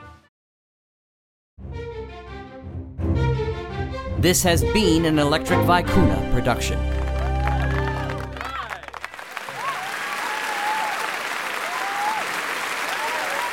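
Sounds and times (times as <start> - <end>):
speech: 4.2 - 7.0
audience roar of applause: 6.4 - 13.5.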